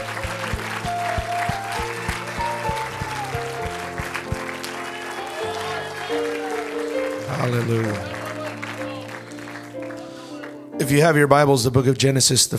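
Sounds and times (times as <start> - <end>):
thumping drum beat: 0.0 - 4.4
audience hand clapping in praise: 0.0 - 10.7
organ chords: 0.0 - 11.6
speech: 7.4 - 8.1, 10.9 - 12.5.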